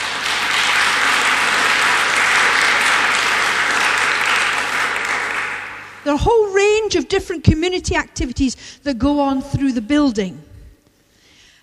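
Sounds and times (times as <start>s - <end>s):
thunderous applause from a large crowd: 0.0s - 6.1s
speech: 6.0s - 10.5s.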